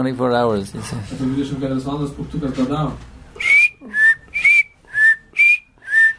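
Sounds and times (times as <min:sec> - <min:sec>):
speech: 0:00.0 - 0:03.1
whistled imitation of a weak bird chirp: 0:03.4 - 0:06.1.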